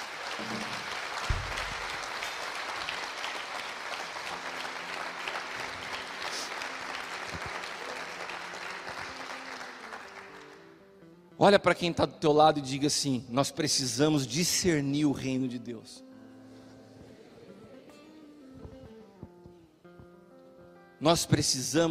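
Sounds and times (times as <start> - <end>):
audience applauding: 0.0 - 10.7
speech: 0.4 - 0.9, 11.4 - 16.1, 21.0 - 21.8.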